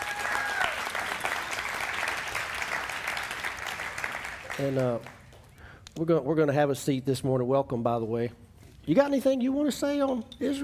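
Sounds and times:
audience applauding for a pastor invited up front: 0.0 - 5.4
speech: 4.6 - 5.2, 6.0 - 10.6.

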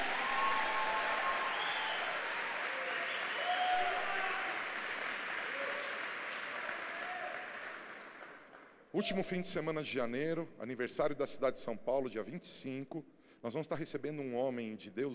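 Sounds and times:
faint cheers and whistles: 0.0 - 7.7
large audience applause: 0.0 - 8.8
speech: 9.0 - 15.1.

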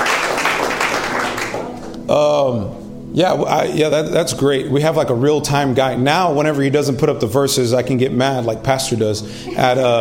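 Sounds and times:
audience applause: 0.0 - 1.9
speech: 2.1 - 9.9.

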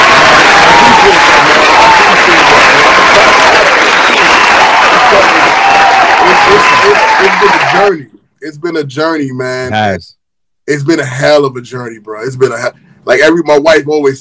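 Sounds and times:
loud sustained applause from a crowd: 0.0 - 8.0
speech: 8.7 - 14.2.

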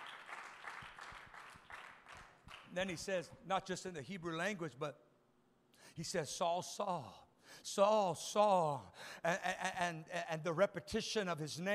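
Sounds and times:
audience clapping hands: 0.0 - 3.2
speech: 2.7 - 5.1, 6.0 - 11.7.

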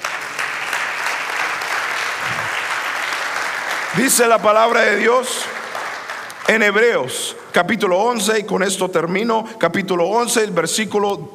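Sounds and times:
audience applause: 0.0 - 6.9
speech: 4.0 - 5.6, 6.5 - 11.3.

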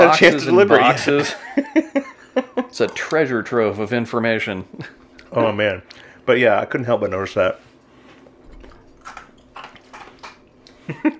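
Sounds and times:
speech: 0.0 - 1.9, 2.7 - 7.7, 10.9 - 11.1
low hum: 0.0 - 11.1
laughter: 0.1 - 2.8, 10.8 - 11.1
person chewing ice: 8.6 - 10.8.

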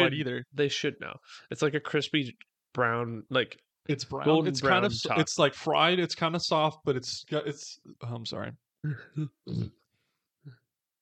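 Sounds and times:
speech: 0.0 - 9.8
person burping: 8.8 - 9.9.

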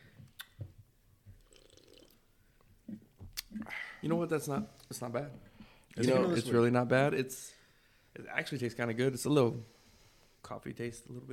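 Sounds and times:
swig of a drink with gulping: 1.4 - 2.2
speech: 4.0 - 7.6, 8.2 - 9.8, 10.4 - 11.3.

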